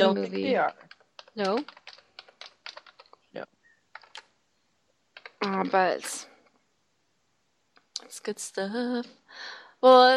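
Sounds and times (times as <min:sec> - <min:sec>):
speech: 0:00.0 - 0:01.8, 0:03.4 - 0:03.6, 0:05.4 - 0:06.3, 0:08.0 - 0:10.1
fingers typing on a computer keyboard: 0:00.6 - 0:03.2, 0:03.9 - 0:04.3, 0:05.1 - 0:05.9.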